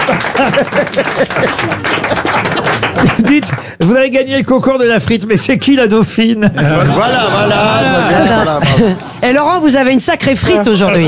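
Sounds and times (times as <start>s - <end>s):
laughter: 0.0s - 3.6s, 6.4s - 9.4s
crowd applauding: 0.0s - 3.8s
speech: 0.4s - 11.0s.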